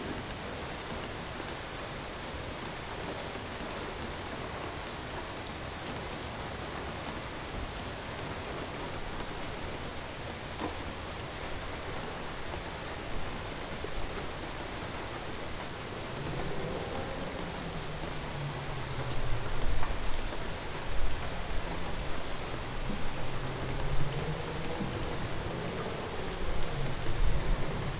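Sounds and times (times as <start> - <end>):
rainfall: 0.0 - 27.9.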